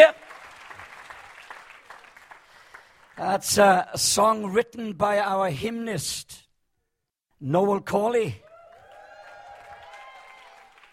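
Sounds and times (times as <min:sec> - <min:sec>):
audience clapping: 0:00.0 - 0:03.4, 0:08.5 - 0:10.9
speech: 0:03.2 - 0:06.4, 0:07.4 - 0:08.4.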